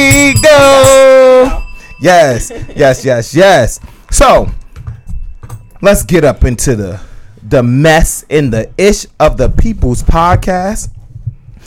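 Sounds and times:
bells sound effect: 0.0s - 7.5s
speech: 2.0s - 4.6s, 5.8s - 11.0s.

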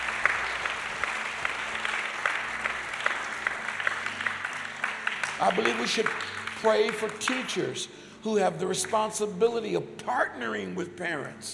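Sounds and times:
audience applauding teachers: 0.0s - 7.8s
speech: 5.4s - 11.5s.

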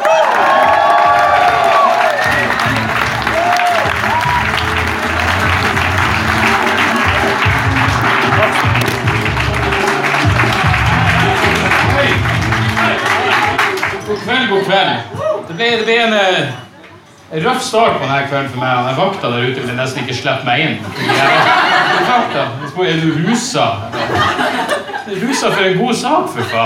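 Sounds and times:
audience applause: 0.0s - 14.2s
speech: 15.0s - 16.6s, 17.3s - 26.6s
laughter: 20.8s - 25.8s.

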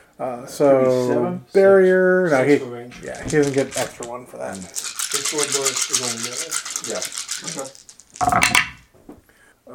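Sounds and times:
speech: 0.2s - 8.7s
black dice being rolled: 3.0s - 8.9s.

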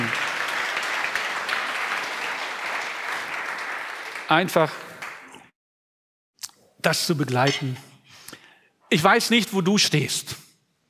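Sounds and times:
audience applause: 0.0s - 5.4s
speech: 4.3s - 4.8s, 6.8s - 7.9s, 8.9s - 10.4s.

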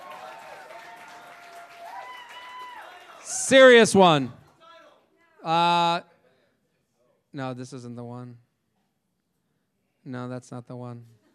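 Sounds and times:
audience applause: 0.0s - 4.0s
speech: 3.4s - 4.4s, 5.4s - 6.1s, 7.4s - 8.4s, 10.0s - 11.2s.

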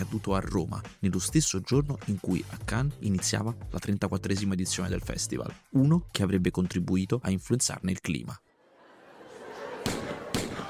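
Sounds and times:
speech: 0.1s - 8.4s
laughter: 8.5s - 10.6s
gunshot sound effect depicting the 1981 shooting of the Pope in Rome: 9.9s - 10.6s.

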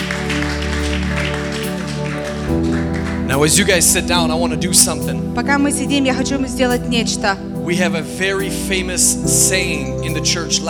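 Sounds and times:
audience applause: 0.0s - 5.2s
speech: 3.3s - 10.6s.

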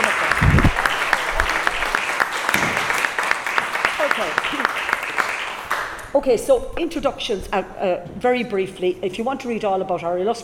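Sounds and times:
audience applause: 0.0s - 6.0s
speech: 6.2s - 10.4s.

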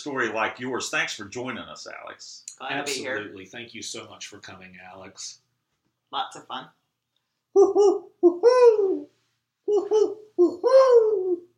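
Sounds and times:
speech: 0.0s - 5.4s, 6.1s - 6.8s, 7.6s - 9.1s, 9.7s - 11.5s
owl hooting: 7.6s - 11.5s.

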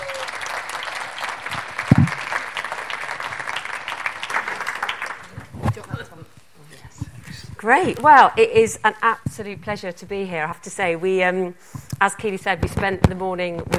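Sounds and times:
audience applause: 0.0s - 5.7s
speech: 7.6s - 13.7s.

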